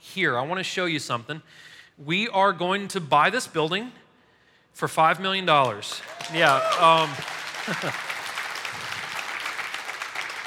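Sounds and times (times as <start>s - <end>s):
speech: 0.2s - 4.0s, 4.8s - 8.1s
audience clapping: 5.6s - 10.4s.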